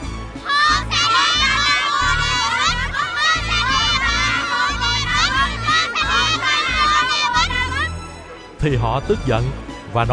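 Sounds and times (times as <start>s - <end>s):
crowd noise: 0.0s - 8.6s
children shouting and cheering inside a temple: 0.3s - 8.3s
speech: 8.6s - 10.1s.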